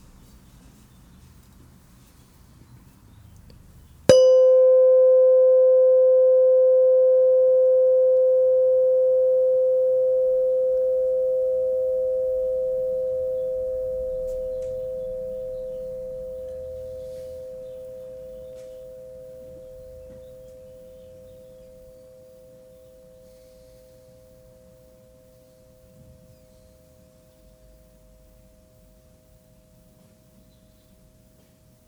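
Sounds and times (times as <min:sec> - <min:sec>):
single bell ringing: 0:04.1 - 0:20.6.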